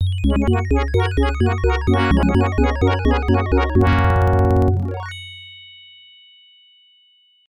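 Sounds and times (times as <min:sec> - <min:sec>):
AdLib FM synthesized fanfare: 0:00.2 - 0:05.2.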